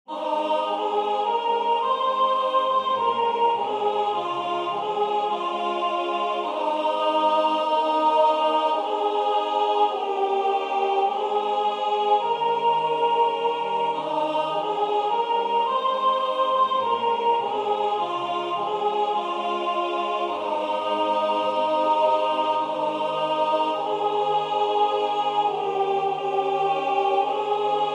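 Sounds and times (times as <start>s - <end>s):
hymn: 0.1s - 27.9s.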